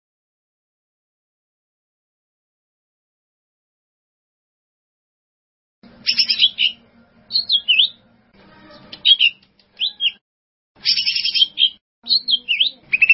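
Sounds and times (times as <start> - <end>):
bird song: 5.8 - 10.2, 10.8 - 13.1.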